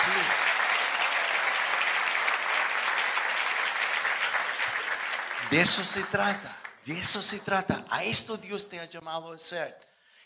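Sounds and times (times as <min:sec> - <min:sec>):
audience applauding: 0:00.0 - 0:07.4
speech: 0:05.5 - 0:09.9.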